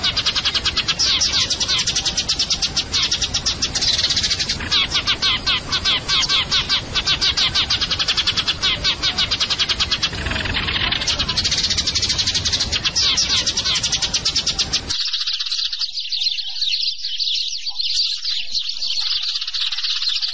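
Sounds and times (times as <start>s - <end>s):
Eurasian tree sparrow chirping rapidly: 0.0s - 20.3s.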